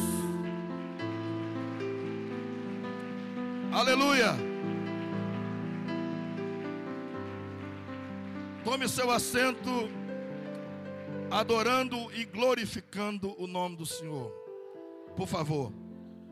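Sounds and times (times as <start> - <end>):
audience applause: 0.0 - 12.2
speech: 3.8 - 4.5, 8.7 - 10.0, 11.3 - 14.4, 15.2 - 15.8.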